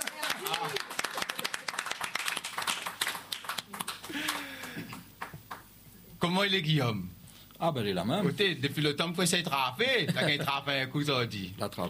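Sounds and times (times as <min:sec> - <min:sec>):
audience applause: 0:00.0 - 0:05.6
speech: 0:06.2 - 0:11.8.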